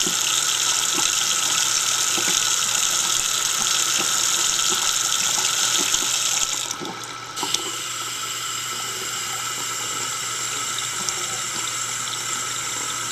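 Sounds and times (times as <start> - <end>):
faucet running: 0.0 - 13.1.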